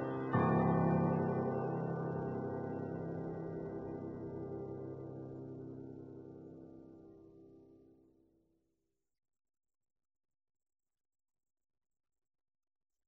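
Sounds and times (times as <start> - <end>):
solo piano: 0.0 - 8.0.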